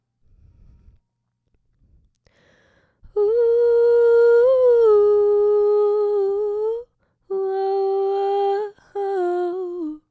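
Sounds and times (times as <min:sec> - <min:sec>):
vocal harmony: 0:03.1 - 0:10.0.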